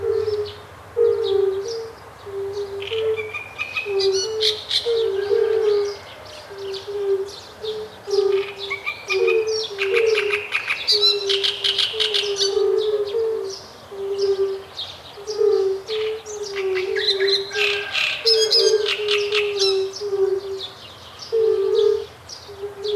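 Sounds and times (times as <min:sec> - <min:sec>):
great reed warbler singing: 0:00.0 - 0:22.9.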